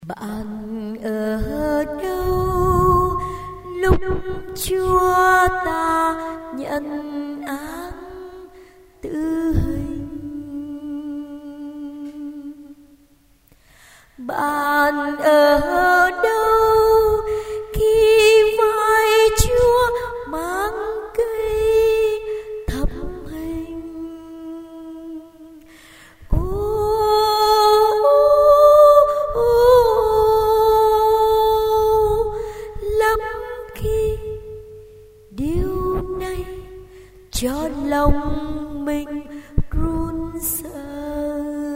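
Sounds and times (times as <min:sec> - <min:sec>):
soprano voice: 0:00.0 - 0:13.0, 0:14.2 - 0:25.7, 0:26.3 - 0:34.6, 0:35.3 - 0:41.7.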